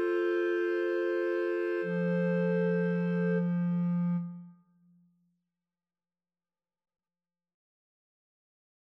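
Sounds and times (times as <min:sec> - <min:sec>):
clarinet trio: 0:00.0 - 0:04.5.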